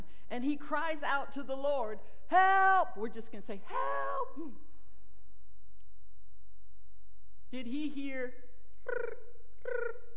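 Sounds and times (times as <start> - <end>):
speech: 0.3 - 4.7, 7.5 - 10.0
voice imitating chirping crickets: 8.8 - 10.1.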